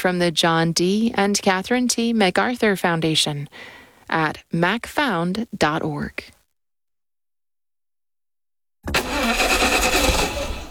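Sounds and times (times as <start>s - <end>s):
speech: 0.0s - 6.4s, 8.8s - 9.1s
car engine cranking and struggling to start: 8.9s - 10.6s.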